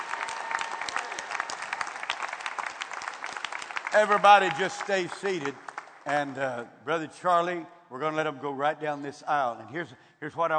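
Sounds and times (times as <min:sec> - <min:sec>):
audience clapping hands: 0:00.0 - 0:06.5
speech: 0:03.9 - 0:10.5.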